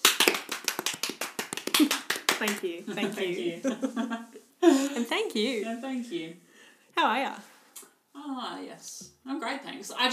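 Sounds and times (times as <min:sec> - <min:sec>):
small group clapping: 0:00.0 - 0:03.2
speech: 0:01.8 - 0:07.5, 0:08.2 - 0:10.1.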